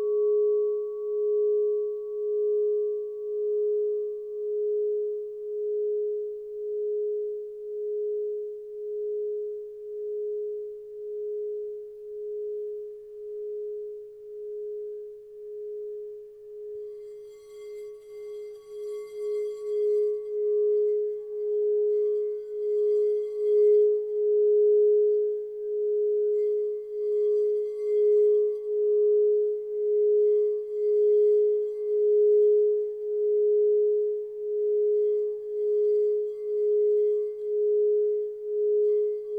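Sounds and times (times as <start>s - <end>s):
6.5 inch crystal bowl tone in G sharp: 0.0s - 39.3s.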